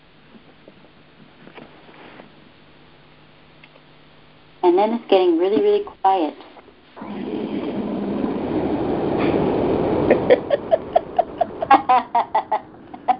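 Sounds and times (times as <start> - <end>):
speech: 4.7 - 6.5
truck passing outside: 7.0 - 11.7
laughter: 10.0 - 13.1.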